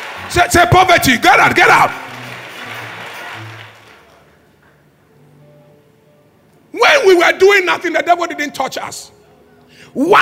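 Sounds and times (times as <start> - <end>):
audience clapping hands: 0.0 - 4.9
speech: 0.2 - 2.1, 7.2 - 9.2, 10.0 - 10.2.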